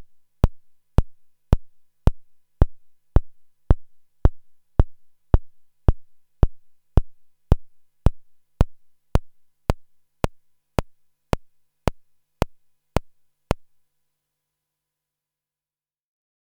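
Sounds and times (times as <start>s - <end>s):
AVP synth bass drum: 0.0s - 12.6s.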